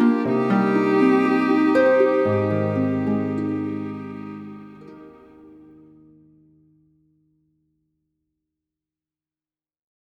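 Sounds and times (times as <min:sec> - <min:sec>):
violins: 0:00.0 - 0:05.7
harp: 0:00.0 - 0:05.8.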